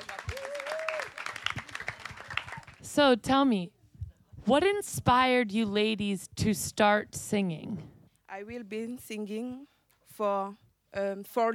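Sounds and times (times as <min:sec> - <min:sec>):
audience applause for a group of women singers: 0:00.0 - 0:02.9
speech: 0:03.0 - 0:03.8, 0:04.5 - 0:07.8, 0:08.4 - 0:11.5.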